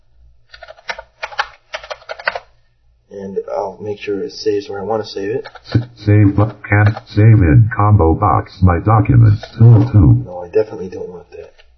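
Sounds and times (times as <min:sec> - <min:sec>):
typing on a computer keyboard: 0:00.6 - 0:02.4
speech: 0:03.1 - 0:11.6
low steady hum: 0:05.7 - 0:10.4.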